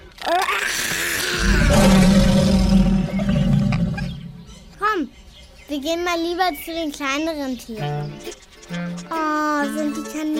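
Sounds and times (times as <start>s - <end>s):
lion roaring: 0.8s - 4.7s
speech: 5.9s - 10.3s.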